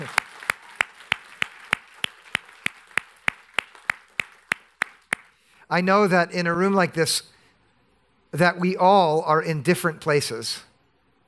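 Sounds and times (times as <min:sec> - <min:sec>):
audience clapping: 0:00.0 - 0:05.4
speech: 0:05.7 - 0:07.3, 0:08.3 - 0:10.7.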